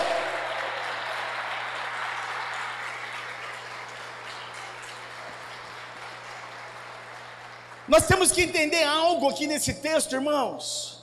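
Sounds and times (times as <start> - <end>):
audience applauding: 0.0 - 8.6
speech: 7.9 - 11.0.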